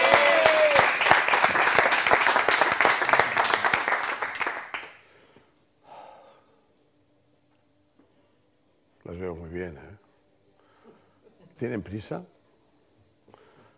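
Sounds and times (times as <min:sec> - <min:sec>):
audience applause: 0:00.0 - 0:05.0
speech: 0:11.6 - 0:12.4.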